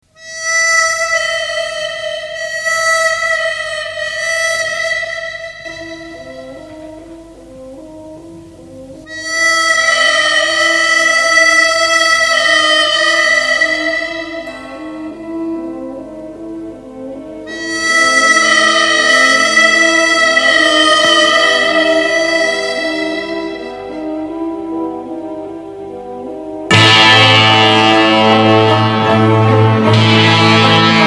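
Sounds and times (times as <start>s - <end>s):
harmonica: 0.1s - 31.0s.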